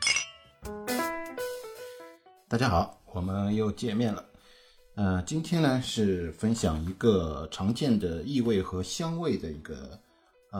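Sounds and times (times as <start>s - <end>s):
glasses clinking in a toast: 0.0s - 0.5s
speech: 2.5s - 4.3s, 5.0s - 10.5s.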